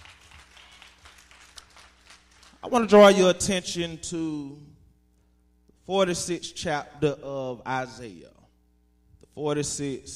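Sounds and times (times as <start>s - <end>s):
crowd clapping hands: 0.0s - 2.7s
speech: 2.7s - 4.7s, 5.9s - 8.4s, 9.4s - 10.1s.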